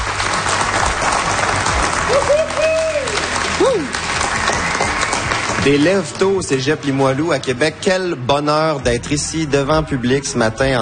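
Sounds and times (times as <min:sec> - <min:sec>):
audience applause: 0:00.0 - 0:06.4
whistle or cheer: 0:02.1 - 0:05.7
speech: 0:05.6 - 0:10.7.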